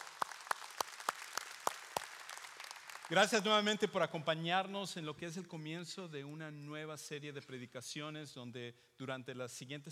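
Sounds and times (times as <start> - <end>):
audience applause: 0.0 - 3.3
speech: 3.1 - 9.9.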